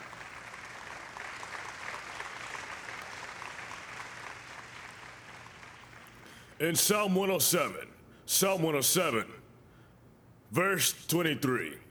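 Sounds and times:
audience applause: 0.0 - 6.2
speech: 6.6 - 9.4, 10.5 - 11.8.

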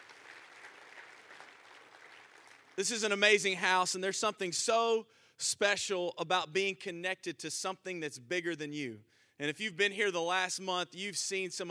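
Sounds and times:
audience hand clap: 0.0 - 3.0
speech: 2.8 - 11.6.

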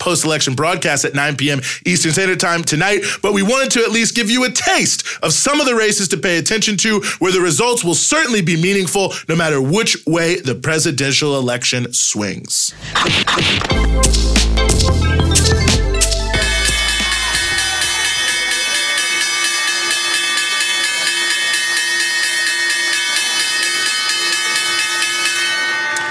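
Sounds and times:
speech: 0.0 - 15.8
New York Stock Exchange opening bell ringing: 14.0 - 26.0.

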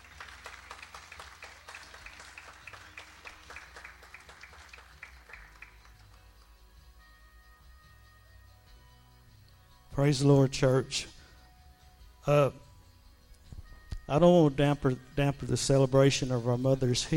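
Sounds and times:
audience applause: 0.0 - 6.3
speech: 10.0 - 11.2, 12.2 - 12.6, 14.1 - 17.1.

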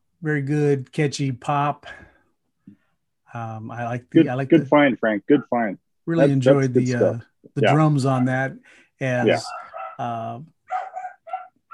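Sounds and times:
speech: 0.2 - 2.1, 3.3 - 10.6
dog barking: 9.2 - 10.0, 10.7 - 11.7.

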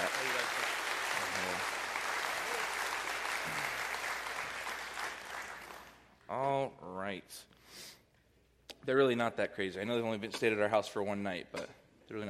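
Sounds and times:
audience applause: 0.0 - 6.1
speech: 8.8 - 12.2.

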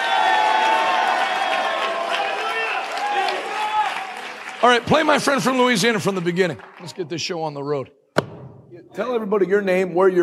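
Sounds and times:
audience clapping: 0.0 - 7.8
speech: 4.6 - 8.0, 9.0 - 10.2.

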